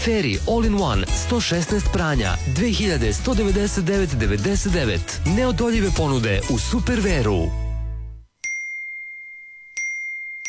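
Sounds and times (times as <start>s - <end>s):
speech: 0.0s - 7.6s
phone message notification dings: 8.4s - 10.4s.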